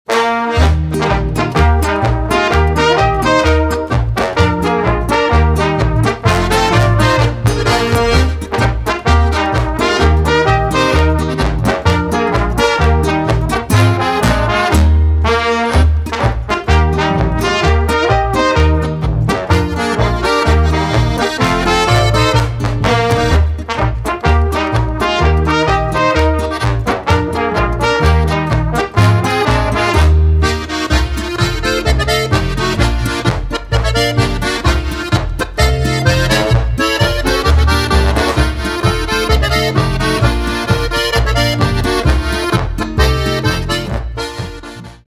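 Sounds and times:
polka music: 0:00.0 - 0:45.0.

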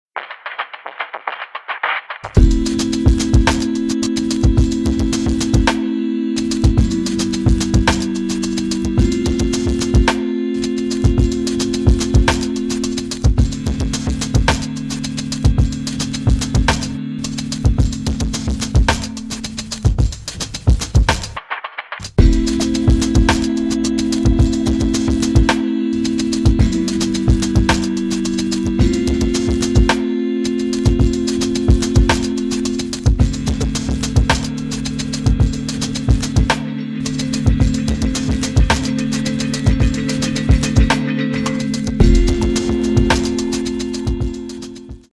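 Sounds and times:
instrumental music: 0:00.2 - 0:45.1.

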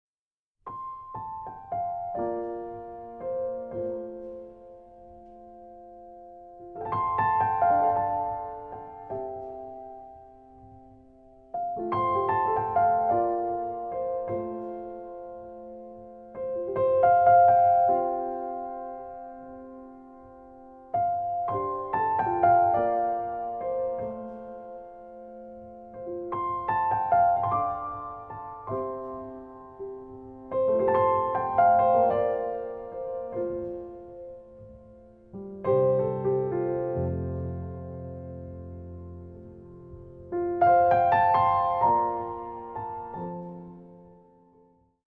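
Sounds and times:
solo piano: 0:00.6 - 0:45.0.

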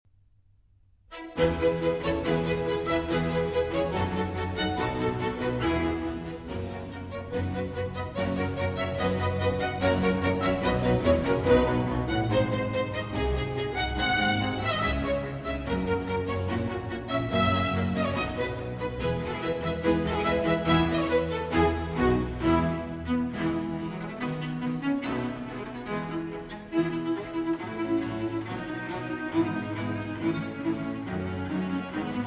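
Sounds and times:
classical cello piece in F major: 0:01.1 - 0:32.2.

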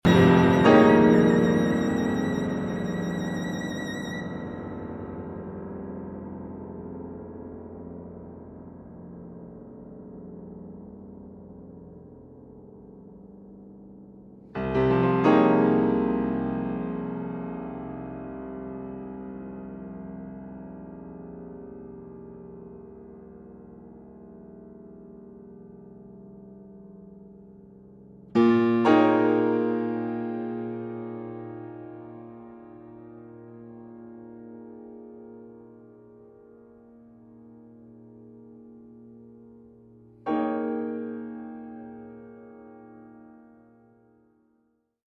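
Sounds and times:
violin: 0:00.0 - 0:05.4
piano: 0:00.0 - 0:44.6.

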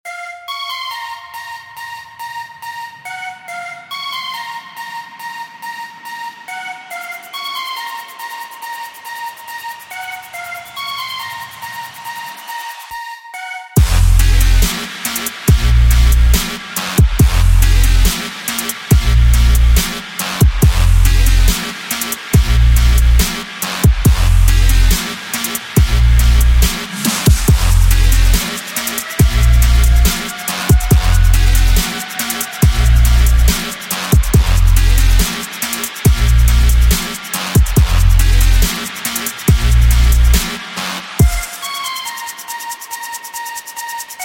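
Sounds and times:
boosted bass: 0:13.8 - 0:21.7, 0:22.3 - 0:40.6.

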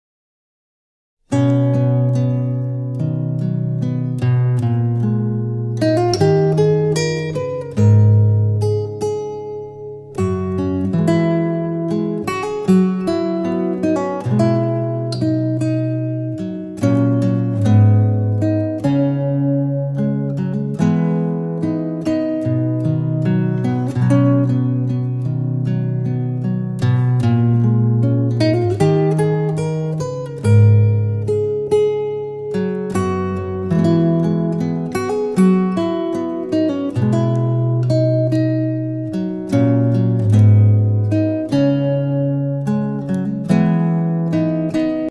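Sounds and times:
guitar solo: 0:01.3 - 0:45.0.

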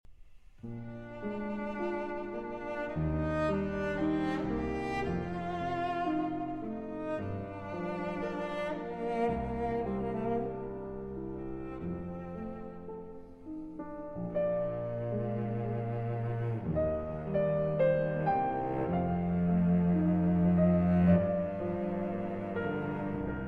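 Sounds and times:
slow cello sonata movement in G minor: 0:00.4 - 0:23.4.

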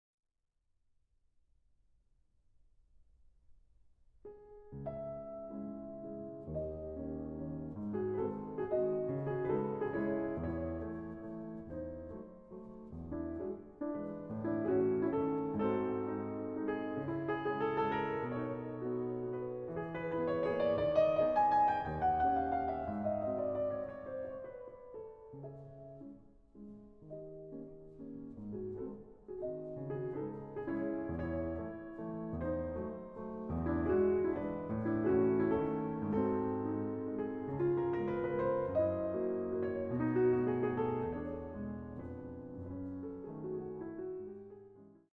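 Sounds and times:
waltz in C-sharp minor: 0:04.8 - 0:45.0.

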